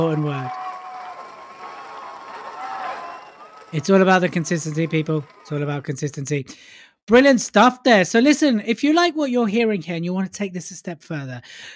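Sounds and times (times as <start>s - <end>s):
speech: 0.0s - 0.6s, 3.7s - 11.7s
crowd cheering sound effect: 0.0s - 6.2s.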